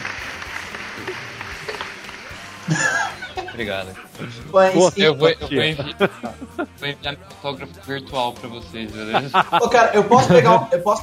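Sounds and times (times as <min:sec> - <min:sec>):
group of people clapping together: 0:00.0 - 0:04.3
laughter: 0:00.0 - 0:11.0
speech: 0:03.6 - 0:11.0.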